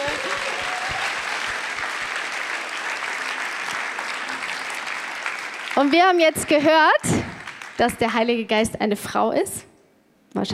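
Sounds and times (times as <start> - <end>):
audience applause: 0.0 - 8.0
speech: 5.8 - 7.2, 7.8 - 9.7, 10.4 - 10.5.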